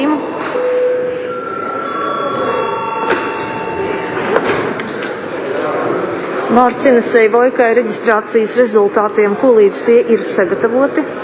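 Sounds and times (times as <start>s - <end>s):
chairman's bell ringing: 0.0s - 5.6s
low murmur of voices: 0.0s - 11.2s
speech: 6.6s - 11.2s.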